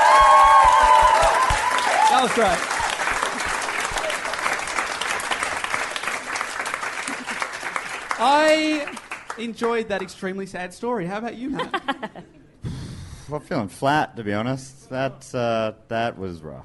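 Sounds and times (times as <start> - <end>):
audience applause: 0.0 - 9.8
speech: 2.2 - 2.7, 8.2 - 12.4, 13.3 - 16.6
laughter: 7.0 - 7.8, 11.4 - 12.6.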